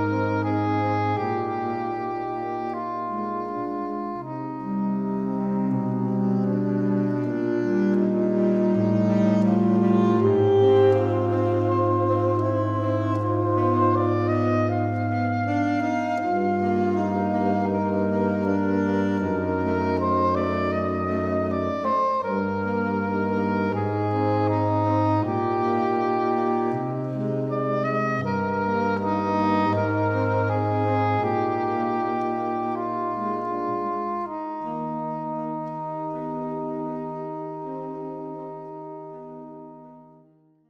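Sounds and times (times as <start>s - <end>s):
string quartet: 0.0s - 40.2s.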